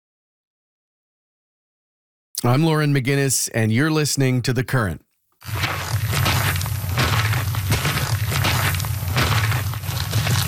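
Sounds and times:
speech: 2.4 - 5.9
boots walking on a trail: 5.4 - 10.4.

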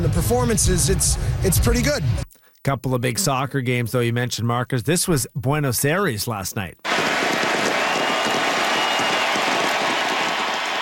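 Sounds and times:
speech: 0.0 - 7.2
stadium crowd applause: 6.9 - 10.8.

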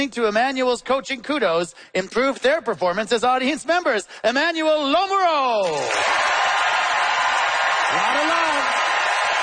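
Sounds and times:
speech: 0.0 - 6.4, 7.9 - 8.8
audience applause: 5.8 - 9.4.

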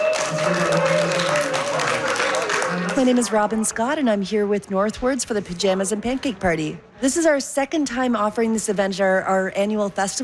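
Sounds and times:
audience applause at a Pajamas and Pancake Party for mothers: 0.0 - 3.2
speech: 0.3 - 1.5, 3.0 - 10.2.

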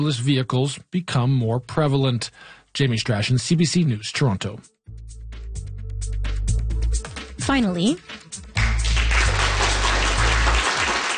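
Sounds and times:
speech: 0.0 - 5.2, 7.0 - 8.5
applause from a viewing party at the University of Toronto: 8.6 - 11.1.

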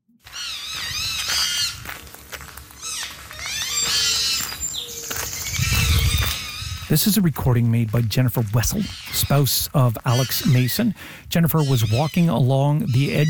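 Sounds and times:
porcupine vocalizing loudly at dawn: 2.8 - 6.9, 8.7 - 9.4, 10.1 - 10.9, 11.5 - 13.2
speech: 6.9 - 13.2.

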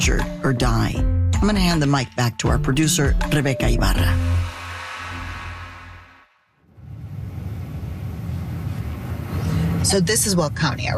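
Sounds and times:
speech: 0.0 - 4.5, 9.9 - 10.9
car driving through Weld County, Colorado on a 98-degree July day: 6.7 - 10.9.

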